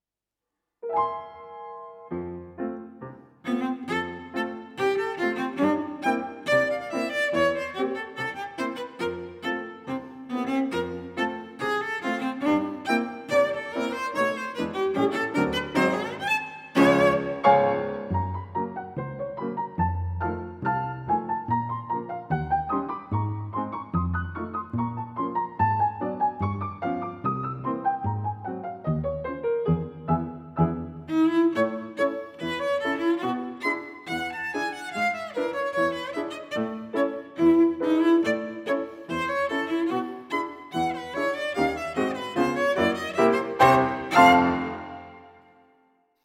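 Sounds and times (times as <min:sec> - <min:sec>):
prelude for cello and piano: 0:00.8 - 0:45.6.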